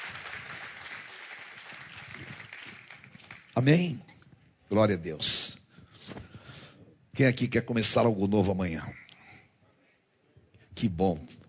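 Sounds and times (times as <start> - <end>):
audience applauding: 0.0 - 3.9
speech: 3.6 - 4.1, 4.7 - 5.5, 7.2 - 9.0, 10.8 - 11.4.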